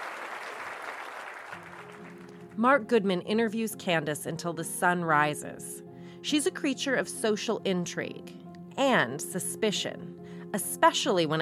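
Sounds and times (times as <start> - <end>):
crowd applauding: 0.0 - 2.4
speech: 2.6 - 11.3.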